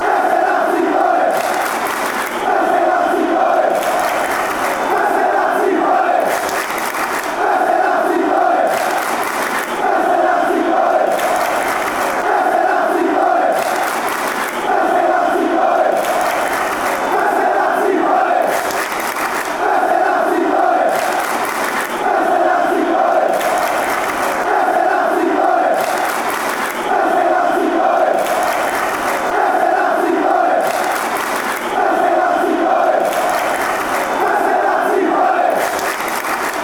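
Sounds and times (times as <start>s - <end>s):
football fans chanting: 0.0s - 36.6s.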